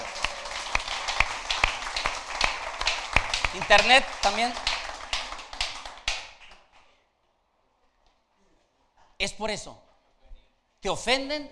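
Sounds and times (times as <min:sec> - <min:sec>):
audience applause: 0:00.0 - 0:06.8
louder sharp claps: 0:00.0 - 0:06.9
speech: 0:03.6 - 0:04.7, 0:09.2 - 0:09.8, 0:10.8 - 0:11.5.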